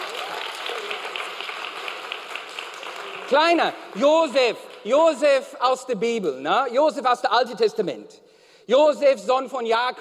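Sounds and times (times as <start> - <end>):
audience applause: 0.0 - 4.9
speech: 3.3 - 9.9.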